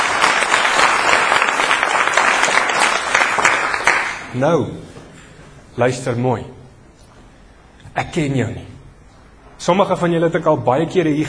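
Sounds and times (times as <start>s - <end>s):
church congregation applauding: 0.0s - 4.4s
speech: 4.4s - 5.0s, 5.8s - 6.6s, 8.0s - 8.7s, 9.6s - 11.2s.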